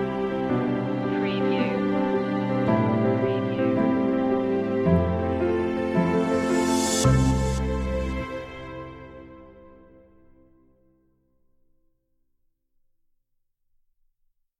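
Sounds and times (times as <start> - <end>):
music stinger: 0.1 - 10.2.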